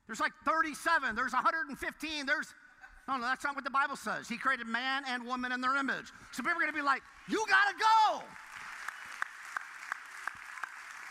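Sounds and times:
speech: 0.1s - 8.4s
scattered audience clapping: 7.1s - 11.0s.

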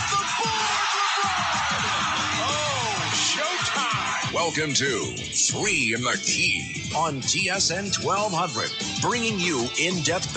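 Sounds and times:
basketball arena crowd cheering: 0.0s - 4.8s
speech: 4.3s - 10.3s.

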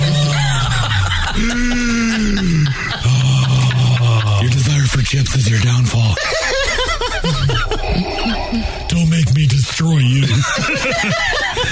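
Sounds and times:
person imitating heavy mechanical villain breathing: 0.0s - 4.9s, 7.6s - 9.2s
laughter: 0.0s - 8.7s, 10.2s - 11.7s
speech: 1.4s - 1.8s, 9.4s - 11.4s.

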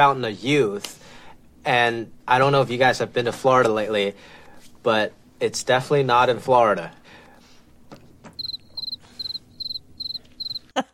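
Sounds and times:
speech: 0.0s - 7.1s
cricket chirping sound effect: 8.4s - 10.7s.

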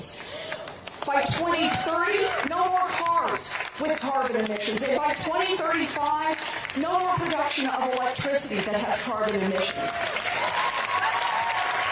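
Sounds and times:
speech: 0.0s - 0.4s, 1.1s - 10.3s
audience clapping: 0.4s - 11.9s.

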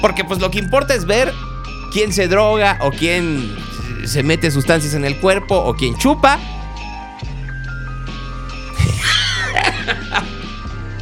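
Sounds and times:
speech: 0.0s - 6.6s
person coughing: 8.8s - 10.1s
laughter: 8.8s - 10.5s.

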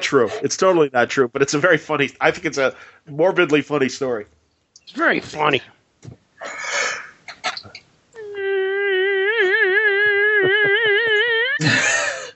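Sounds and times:
speech: 0.1s - 6.7s
person yawning: 8.2s - 12.3s.

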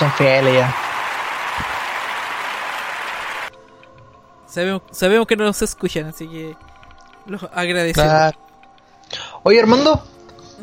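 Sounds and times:
speech: 0.0s - 0.8s, 4.5s - 8.4s, 9.1s - 10.6s
applause: 0.0s - 3.5s.

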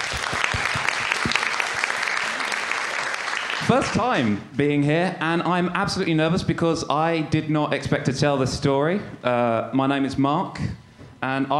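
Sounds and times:
audience applause: 0.0s - 4.4s
speech: 3.7s - 11.5s.

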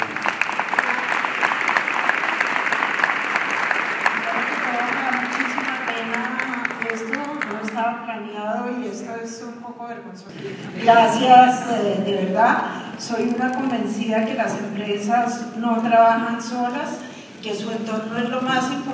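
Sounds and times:
audience applause: 0.0s - 7.7s
speech: 10.0s - 18.9s.

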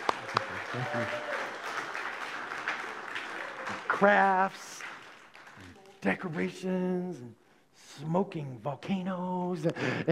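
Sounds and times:
audience applause: 0.0s - 6.2s
speech: 0.7s - 1.3s, 4.0s - 4.7s, 6.0s - 7.4s, 8.0s - 10.1s.

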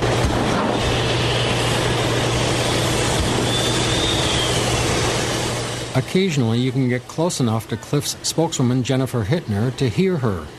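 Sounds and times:
giant ore processing machines rumbling and rattling: 0.0s - 10.5s
faint high whistle: 3.4s - 5.0s
speech: 6.0s - 10.5s.

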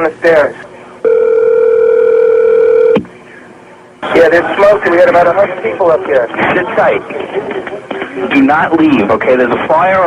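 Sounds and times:
speech: 0.0s - 0.6s, 4.2s - 10.0s
steady mid-pitch telephone tone during a call transfer: 1.0s - 3.0s.

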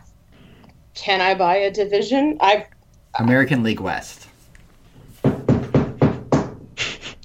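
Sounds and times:
speech: 1.1s - 4.3s
knocking on a wall: 5.2s - 6.7s.

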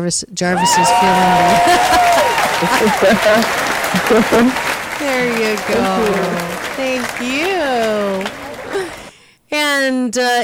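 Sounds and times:
speech: 0.0s - 9.0s, 9.8s - 10.4s
laughter: 0.5s - 9.1s
group applauding: 0.5s - 9.2s
vocal sounds: 4.0s - 6.5s.

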